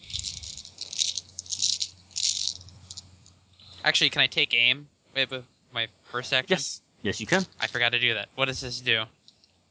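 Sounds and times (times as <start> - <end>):
handful of dice rolling: 0.0 - 3.0
speech: 3.8 - 9.2.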